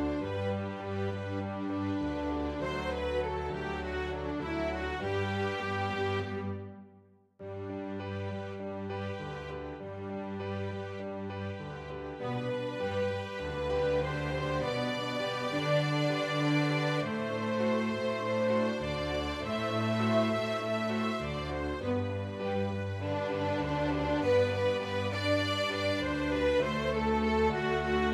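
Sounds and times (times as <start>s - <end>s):
strings playing a raging rumba: 0.0s - 28.1s.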